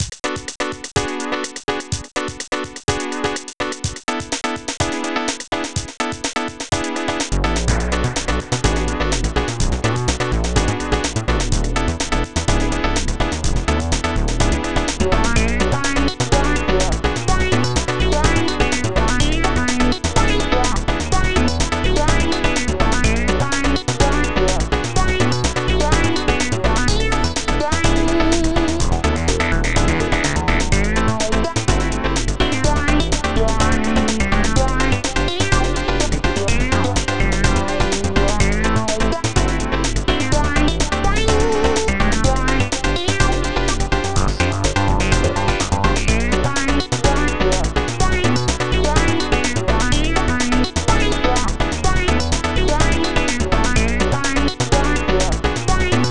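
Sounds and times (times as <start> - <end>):
game music: 0.0 - 56.1.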